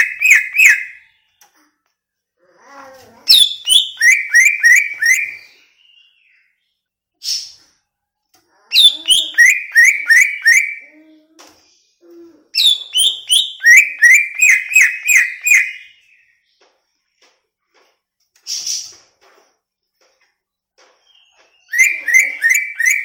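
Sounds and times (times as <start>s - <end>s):
greater green leafbird whistling song: 0.0s - 1.1s, 3.3s - 6.4s, 8.8s - 10.9s, 12.6s - 16.3s, 21.1s - 23.0s.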